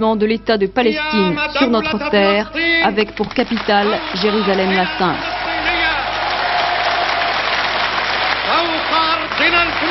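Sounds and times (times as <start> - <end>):
speech: 0.0 - 5.3
thunderous applause from an assembly: 3.4 - 9.8.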